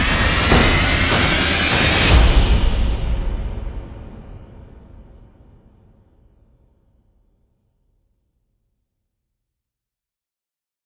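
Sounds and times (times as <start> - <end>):
drums: 0.0 - 5.6.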